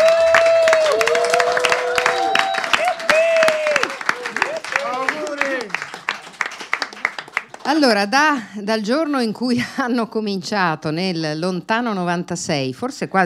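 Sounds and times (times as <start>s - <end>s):
audience applause: 0.0s - 8.1s
speech: 7.7s - 13.2s.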